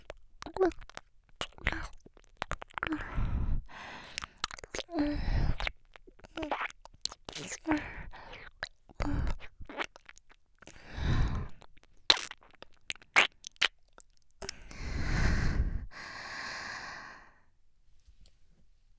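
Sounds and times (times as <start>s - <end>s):
slow teasing ear licking: 0.0s - 14.8s.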